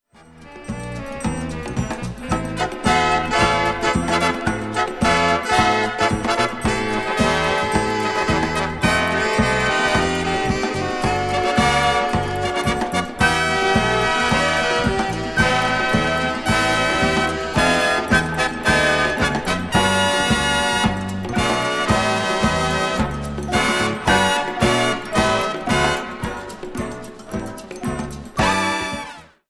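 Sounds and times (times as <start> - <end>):
samba music: 0.2 - 29.4.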